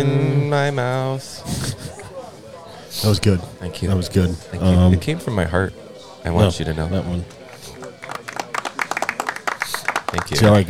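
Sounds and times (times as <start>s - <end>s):
speech: 0.0s - 2.0s, 2.9s - 7.4s, 10.1s - 10.6s
laughter: 1.0s - 10.6s
applause sound effect from soundboard: 7.4s - 10.6s.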